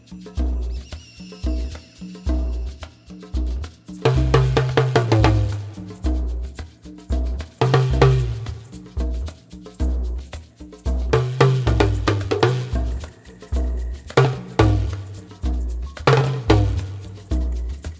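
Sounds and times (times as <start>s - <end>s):
seven drums playing in seven four time: 0.4s - 17.9s.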